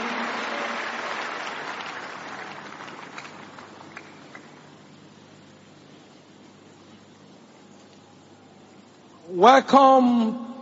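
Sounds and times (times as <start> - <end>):
church congregation applauding at a miracle service: 0.0 - 4.9
speech: 9.3 - 10.4.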